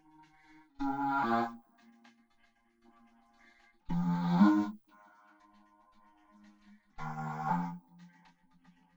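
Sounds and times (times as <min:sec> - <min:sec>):
vocoder voice: 0:03.9 - 0:04.7, 0:07.0 - 0:07.8.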